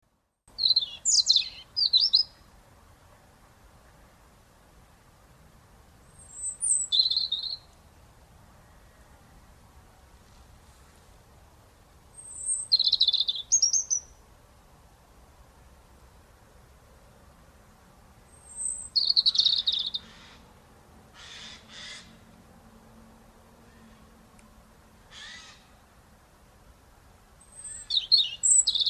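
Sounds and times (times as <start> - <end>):
European robin song: 0.6 - 2.4, 6.2 - 7.7, 12.2 - 14.2, 18.3 - 20.1, 27.4 - 28.8.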